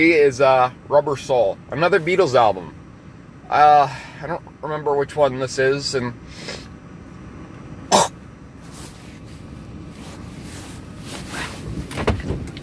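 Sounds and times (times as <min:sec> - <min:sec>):
speech: 0:00.0 - 0:02.8, 0:03.5 - 0:06.7
person coughing to clear phlegm from the throat: 0:07.9 - 0:08.2
faint rustling: 0:08.6 - 0:12.6.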